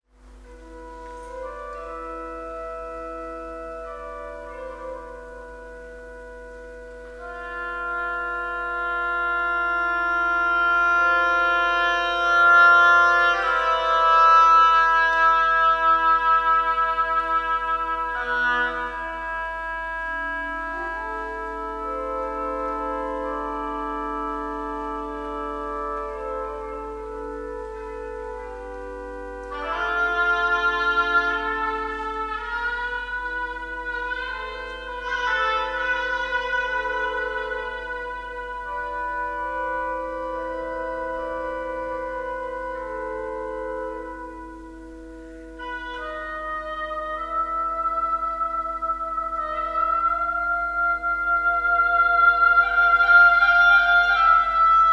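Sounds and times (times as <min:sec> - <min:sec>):
improvised music: 0:00.0 - 0:54.9.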